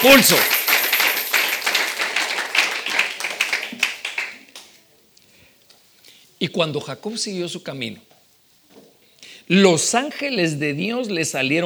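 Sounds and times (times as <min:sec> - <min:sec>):
speech: 0:00.0 - 0:00.6, 0:06.4 - 0:08.1, 0:09.5 - 0:11.6
crowd clapping: 0:00.0 - 0:04.8.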